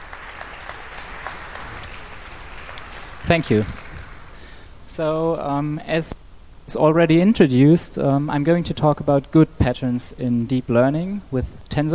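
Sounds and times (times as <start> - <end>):
audience applause: 0.0 - 4.5
speech: 3.3 - 3.8, 4.9 - 11.9.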